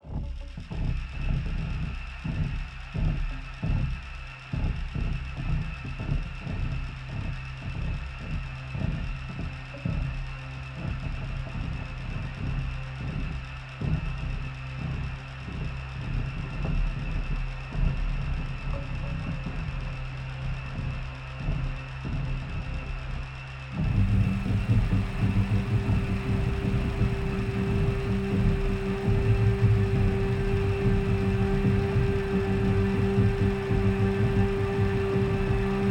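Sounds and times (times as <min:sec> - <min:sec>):
music in E Phrygian at 81 BPM: 0:00.4 - 0:35.8.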